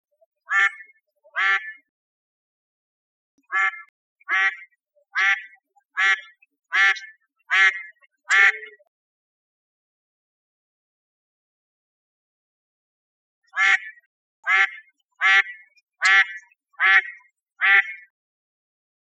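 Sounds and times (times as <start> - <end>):
mallard quacking: 0.5 - 1.8, 3.5 - 8.8, 13.6 - 18.1.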